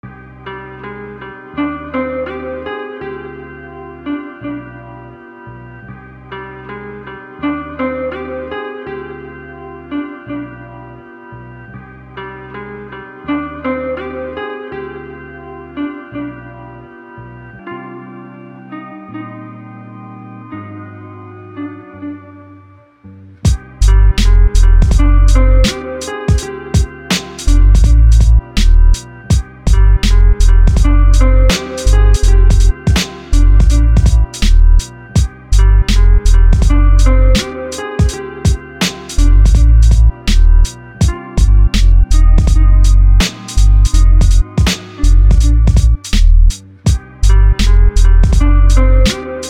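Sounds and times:
beats: 23.5 - 35.3, 35.9 - 49.4.

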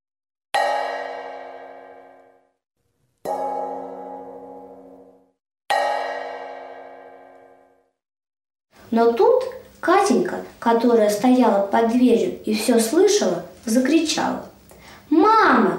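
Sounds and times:
large frying pan struck, ringing like a bell: 0.6 - 2.5, 3.3 - 7.8
speech: 8.9 - 14.5, 15.2 - 15.7.

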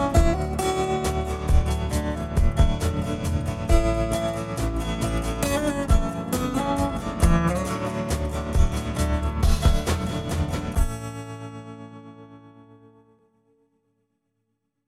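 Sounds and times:
ambient music: 0.0 - 11.3.

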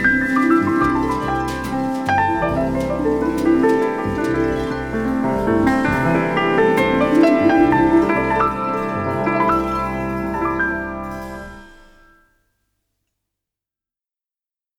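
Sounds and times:
shaker: 0.0 - 11.2.

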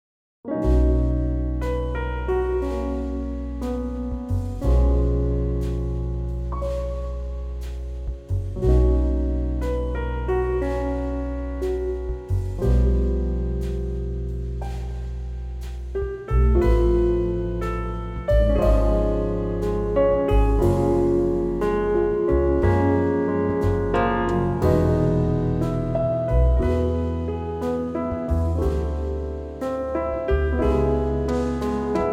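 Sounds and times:
relaxing jazz trio playing: 0.5 - 32.1.

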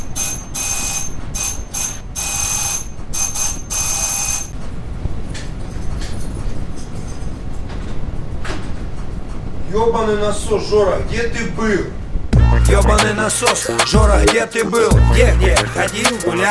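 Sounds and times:
doorbell ringing: 0.0 - 4.6
speech: 9.8 - 12.0, 12.7 - 16.4.

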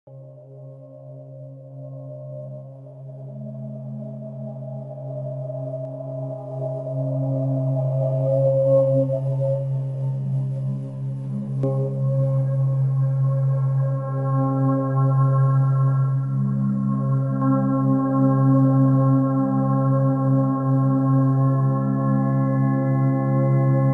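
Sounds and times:
528 Hz tone: 0.1 - 23.9.

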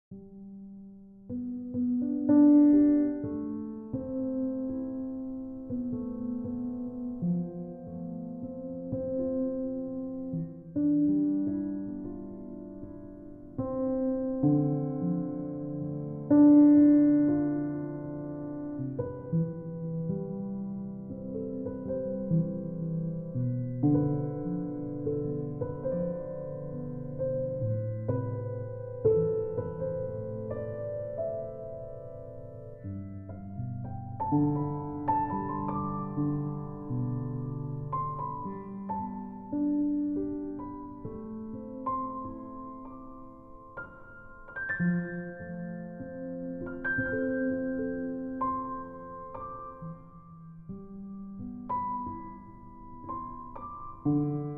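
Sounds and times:
zen piano music: 0.1 - 54.5.

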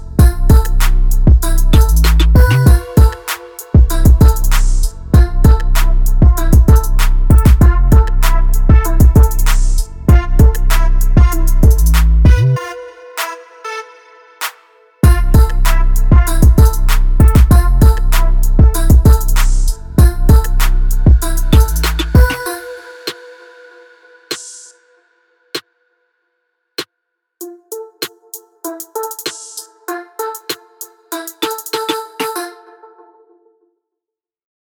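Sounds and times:
instrumental beat: 0.0 - 13.4, 14.4 - 23.2, 27.4 - 32.6.

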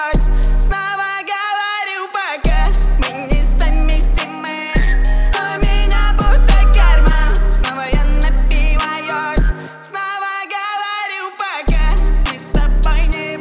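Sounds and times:
37, 39 and 41 Hz low bass tone: 0.2 - 0.8, 2.5 - 8.8, 11.7 - 13.2.

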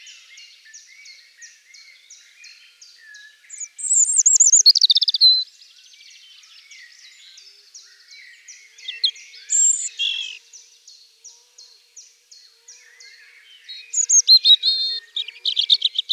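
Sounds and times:
European robin singing: 3.0 - 5.5, 7.8 - 10.4, 12.9 - 16.1.

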